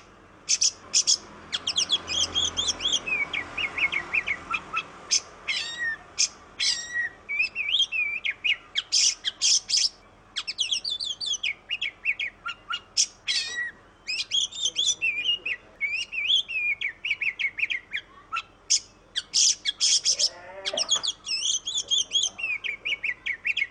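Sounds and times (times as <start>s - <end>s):
Oriental magpie-robin singing tutor song in tembakan style: 0.0s - 23.6s.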